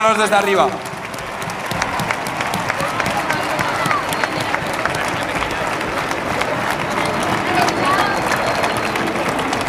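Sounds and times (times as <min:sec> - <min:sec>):
audience applause: 0:00.1 - 0:09.6.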